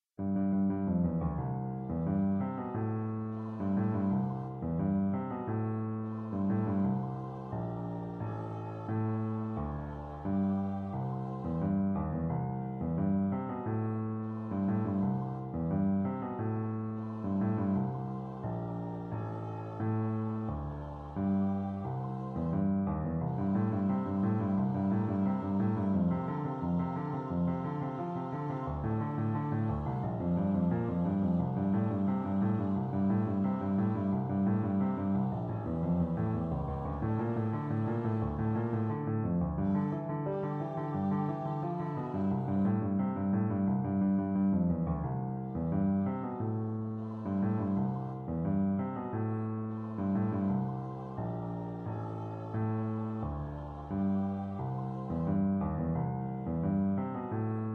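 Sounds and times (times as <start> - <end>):
piano: 0.0 - 57.7.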